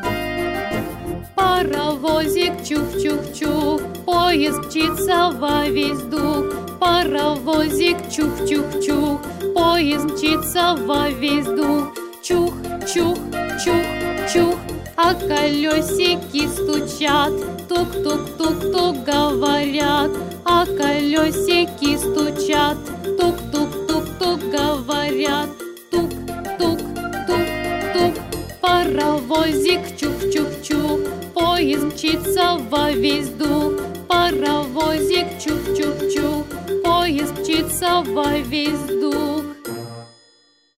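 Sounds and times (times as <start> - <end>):
children's song about a little train: 0.1 - 40.0.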